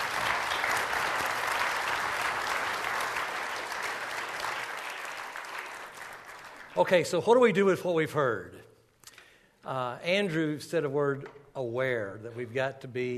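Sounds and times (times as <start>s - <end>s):
audience applause: 0.0s - 7.0s
speech: 6.8s - 8.6s, 9.7s - 13.1s.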